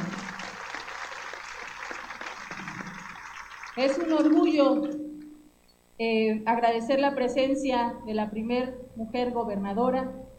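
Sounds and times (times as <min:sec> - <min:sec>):
crowd applause: 0:00.0 - 0:04.6
speech: 0:03.8 - 0:05.0, 0:06.0 - 0:10.2.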